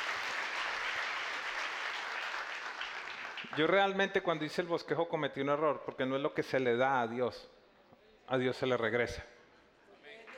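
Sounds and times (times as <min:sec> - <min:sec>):
audience applause: 0:00.0 - 0:03.8
speech: 0:03.6 - 0:07.6, 0:08.3 - 0:09.4.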